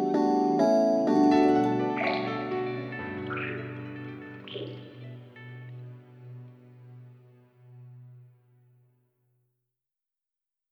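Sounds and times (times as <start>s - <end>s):
off vocal instrumental music: 0.0s - 8.2s.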